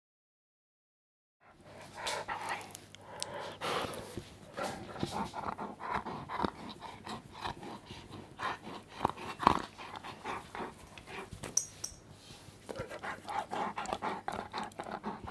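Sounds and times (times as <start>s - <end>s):
Swiss mountain dog panting: 1.4s - 11.4s, 12.6s - 15.2s.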